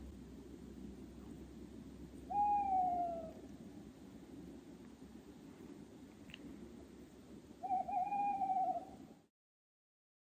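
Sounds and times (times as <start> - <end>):
tawny owl giving long steady hoots: 2.3 - 3.5, 7.6 - 9.1.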